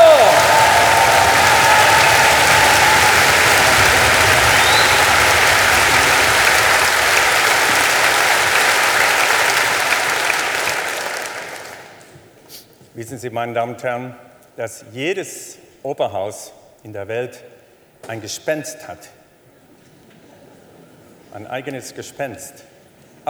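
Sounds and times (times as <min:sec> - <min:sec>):
large concert audience applause: 0:00.0 - 0:12.2
speech: 0:13.2 - 0:19.2, 0:21.3 - 0:23.2.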